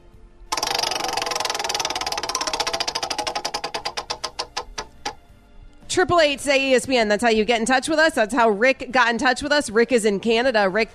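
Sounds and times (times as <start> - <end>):
spinning prize wheel clicking: 0.5 - 5.2
speech: 5.9 - 10.9.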